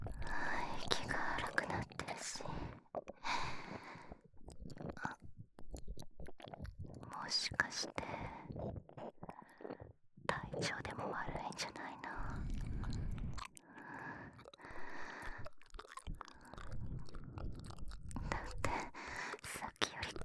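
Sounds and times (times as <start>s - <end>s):
nipple licking: 0.0s - 20.2s
ear licking: 2.9s - 7.0s, 11.7s - 20.2s.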